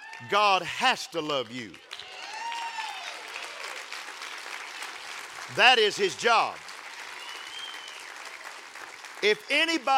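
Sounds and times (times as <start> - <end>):
audience clapping: 0.0 - 9.9
speech: 0.2 - 1.9, 5.5 - 6.6, 9.2 - 9.9
rising-and-falling whistle-like tone: 7.2 - 8.0.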